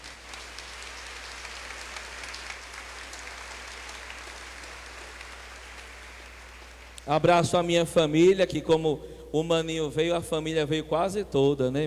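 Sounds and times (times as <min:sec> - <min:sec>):
round of applause: 0:00.0 - 0:07.1
speech: 0:07.1 - 0:11.8.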